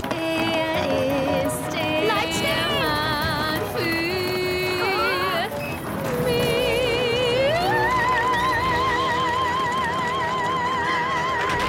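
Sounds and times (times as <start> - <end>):
singing: 0.1 - 11.6.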